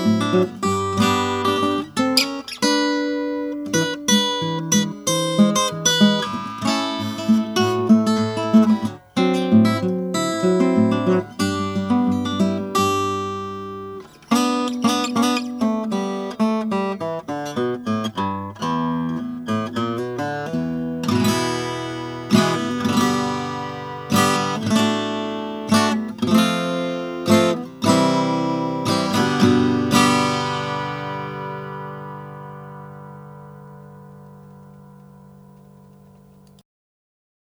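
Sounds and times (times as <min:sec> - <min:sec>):
1945 Martin 00-17 guitar playing: 0:00.0 - 0:36.6.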